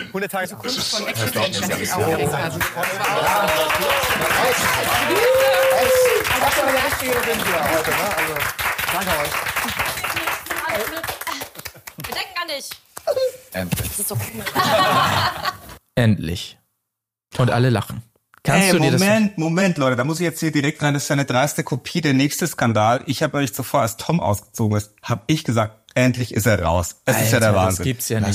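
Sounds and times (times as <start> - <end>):
speech: 0.1 - 10.0, 10.8 - 11.1, 12.5 - 16.6, 17.4 - 28.3
laughter: 0.7 - 8.4, 14.4 - 15.8
audience applause: 1.8 - 12.3.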